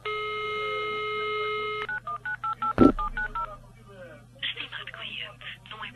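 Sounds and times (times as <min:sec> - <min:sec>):
steady telephone tone: 0:00.1 - 0:03.5
short keypad beeps of someone dialing a phone call: 0:01.6 - 0:03.5.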